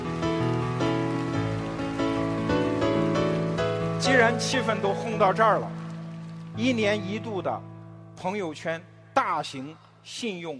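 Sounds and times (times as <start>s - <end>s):
audience applause: 0.0s - 7.1s
speech: 4.1s - 5.8s, 6.6s - 10.5s.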